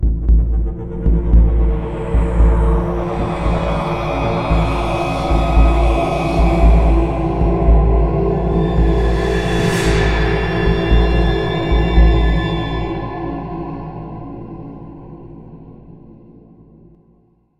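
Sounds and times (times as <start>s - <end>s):
fear music sting: 0.1s - 14.8s.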